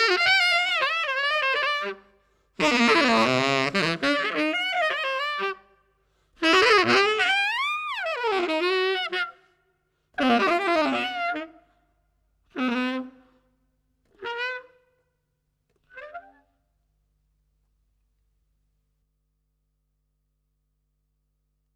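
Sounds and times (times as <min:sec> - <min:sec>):
tenor saxophone: 0:00.0 - 0:15.1, 0:15.7 - 0:16.6.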